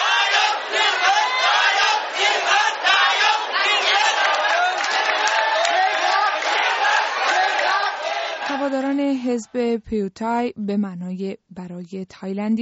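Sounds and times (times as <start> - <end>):
large crowd shouting victory cries and cheering: 0.0 - 8.8
speech: 9.3 - 12.6.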